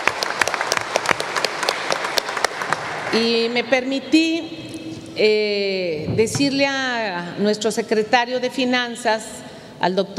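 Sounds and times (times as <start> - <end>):
audience applause: 0.0 - 3.1
speech: 3.1 - 4.6, 5.2 - 10.1.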